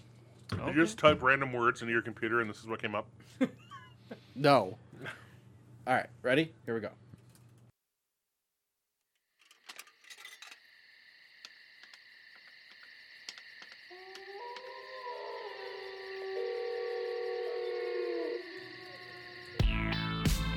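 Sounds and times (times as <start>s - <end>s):
speech: 0.6s - 5.2s, 5.8s - 7.0s
crickets chirping: 9.5s - 20.5s.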